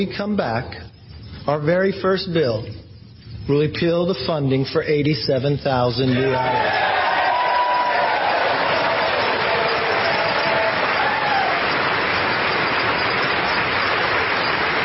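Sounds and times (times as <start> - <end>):
speech: 0.0 - 0.9, 1.5 - 2.8, 3.5 - 7.1
faint cheers and voices: 6.1 - 13.4
sustained applause from a large crowd: 6.2 - 14.8.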